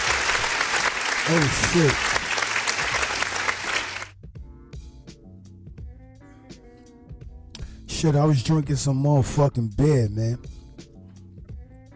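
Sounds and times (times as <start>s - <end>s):
applause: 0.0s - 4.2s
speech: 1.3s - 2.2s, 8.0s - 10.6s.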